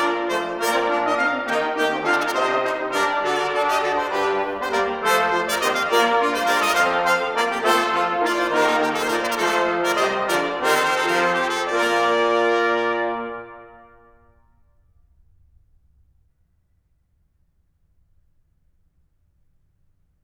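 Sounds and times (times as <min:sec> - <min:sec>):
brass ensemble playing an arrangement for viols and continuo: 0:00.0 - 0:14.3.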